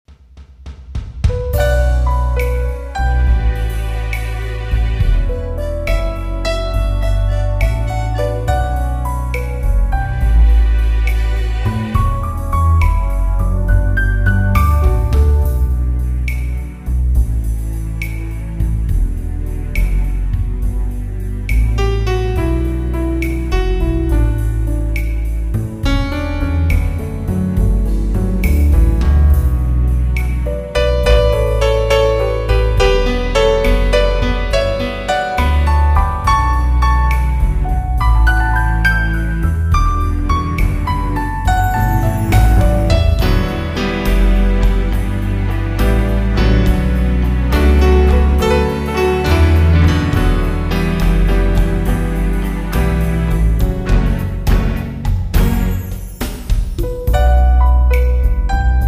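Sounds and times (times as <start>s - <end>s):
jazzy noir music: 1.2s - 58.8s.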